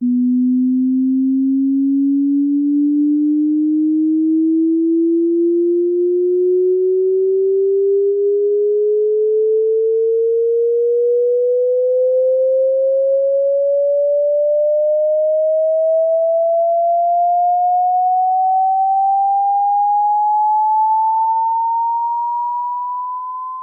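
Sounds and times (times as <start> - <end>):
pure sine tone sweeping upward in pitch: 0.0 - 23.6.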